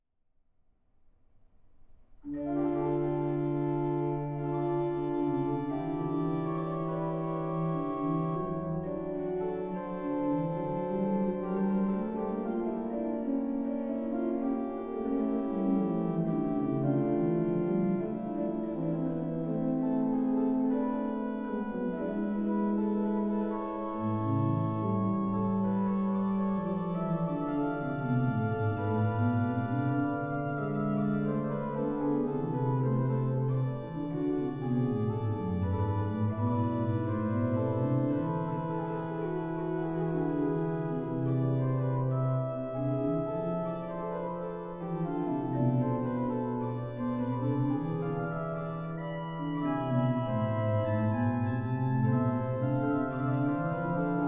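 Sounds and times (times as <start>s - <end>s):
organ prelude in D minor: 2.2s - 54.2s.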